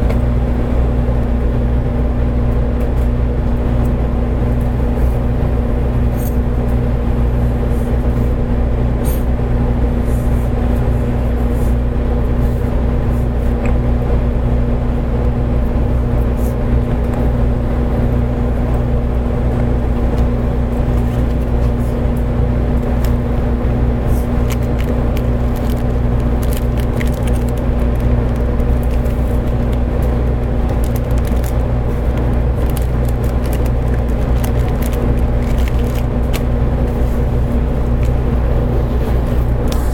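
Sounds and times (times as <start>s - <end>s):
JR Kyushu 811 series train rumble on the Kagoshima line: 0.0s - 39.9s
constant train hum: 0.0s - 39.9s
faint clicks and rattles: 24.1s - 36.5s.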